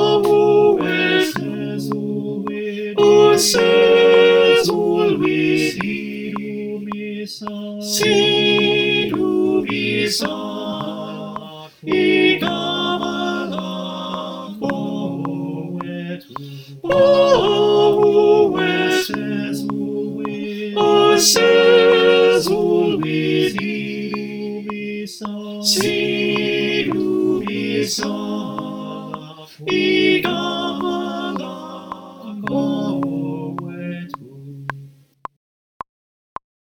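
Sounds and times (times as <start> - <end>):
click track clicks: 0.0 - 21.4, 22.4 - 34.8
soprano singing: 0.0 - 34.8.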